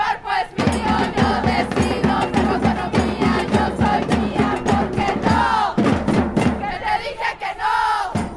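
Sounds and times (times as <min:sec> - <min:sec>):
crowd of women chanting slogans at a protest: 0:00.0 - 0:08.3
pounding drum beat: 0:00.6 - 0:07.0, 0:08.1 - 0:08.3.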